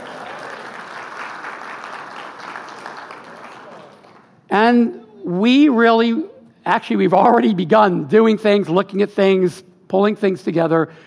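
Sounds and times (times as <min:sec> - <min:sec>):
audience applause: 0:00.0 - 0:04.3
speech: 0:04.5 - 0:11.0.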